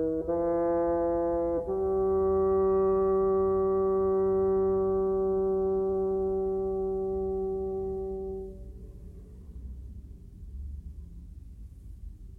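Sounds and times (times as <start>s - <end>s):
oboe: 0.0s - 8.7s
bassoon solo: 0.0s - 8.8s
clarinet: 0.0s - 8.8s.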